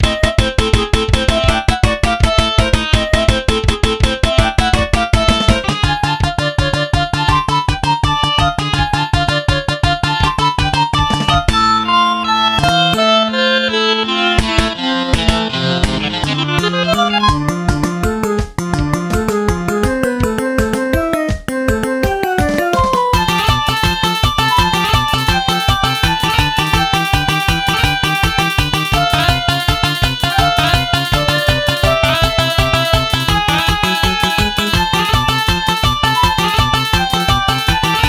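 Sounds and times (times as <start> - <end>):
MIDI boss battle music: 0.0 - 38.0.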